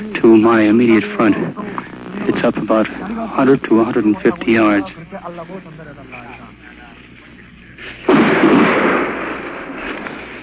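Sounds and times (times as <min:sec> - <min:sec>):
speech: 0:00.3 - 0:06.3
artillery shell landing with a heavy explosion on a battlefield: 0:08.0 - 0:10.4.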